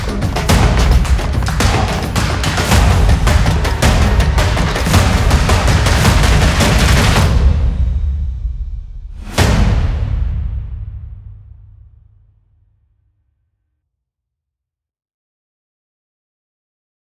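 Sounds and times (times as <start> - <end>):
hybrid percussion: 0.0 - 12.3.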